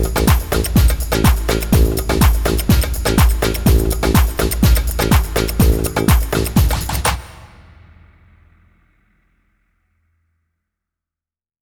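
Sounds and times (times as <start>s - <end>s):
tabla playing: 0.0s - 8.0s.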